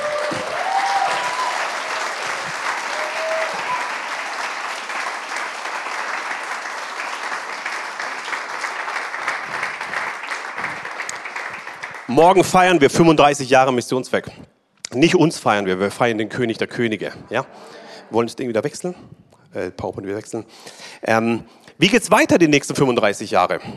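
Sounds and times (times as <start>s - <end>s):
audience applause: 0.0s - 12.8s
speech: 12.2s - 23.7s.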